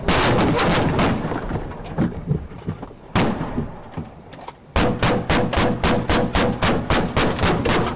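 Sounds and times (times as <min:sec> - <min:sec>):
gunfire during police ambush: 0:00.0 - 0:01.6, 0:03.2 - 0:03.9, 0:04.8 - 0:07.9.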